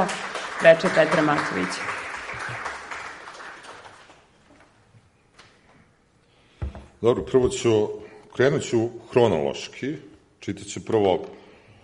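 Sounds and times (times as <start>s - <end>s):
speech: 0.0s - 2.0s, 7.0s - 11.4s
audience applause at a poetry reading: 0.0s - 4.3s.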